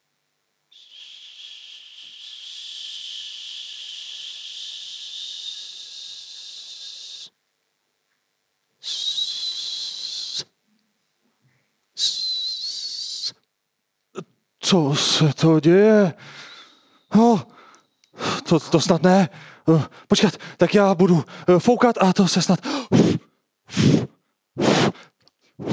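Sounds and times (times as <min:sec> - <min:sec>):
air hissing out of a deflating balloon: 0:00.8 - 0:07.3, 0:22.7 - 0:25.7
speech: 0:14.7 - 0:16.4, 0:18.5 - 0:22.8.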